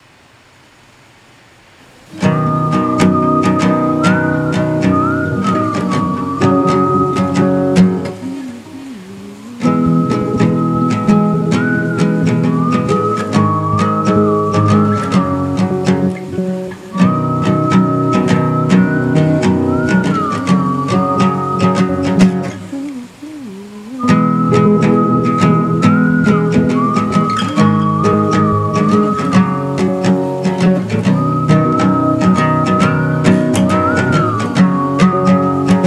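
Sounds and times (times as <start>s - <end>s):
whistle: 2.1s - 35.8s.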